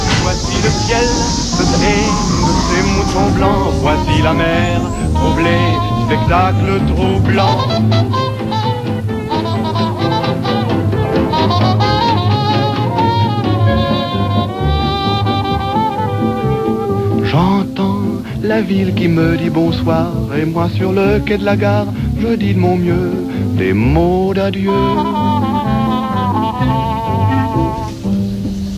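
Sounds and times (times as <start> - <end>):
chanson: 0.0 - 28.7.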